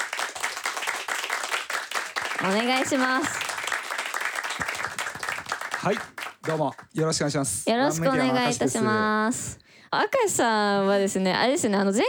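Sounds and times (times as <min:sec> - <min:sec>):
audience applause welcoming guest: 0:00.0 - 0:06.9
speech: 0:02.4 - 0:03.4, 0:05.8 - 0:12.0.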